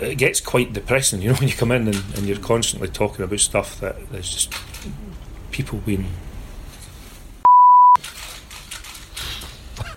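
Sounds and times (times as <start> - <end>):
speech: 0.0 - 6.3
censor beep machine: 7.4 - 8.0.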